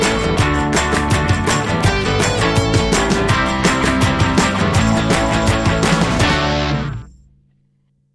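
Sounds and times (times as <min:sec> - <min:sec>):
music: 0:00.0 - 0:07.2.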